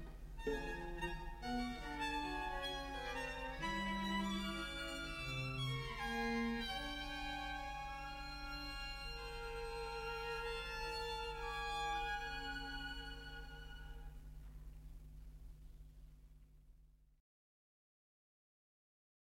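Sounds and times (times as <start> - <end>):
string quartet: 0.0 - 14.2.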